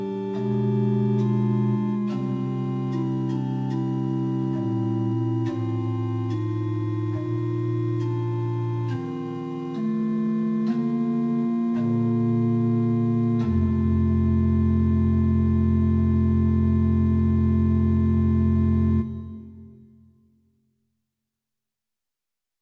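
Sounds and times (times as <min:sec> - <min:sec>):
liturgical organ Rohr flute eight-foot stop at pitch 440 in equal temperament: 0:00.0 - 0:19.9.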